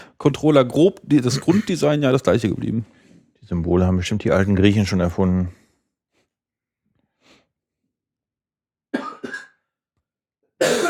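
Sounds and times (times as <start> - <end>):
speech: 0.2 - 5.6
coughing: 8.9 - 9.7, 10.6 - 10.8.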